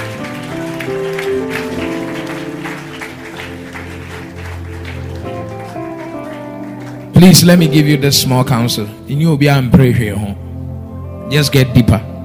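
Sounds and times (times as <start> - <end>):
crowd clapping: 0.0 - 8.3
sustained music with held tonal notes: 0.0 - 12.2
speech: 7.2 - 10.4, 11.3 - 12.1.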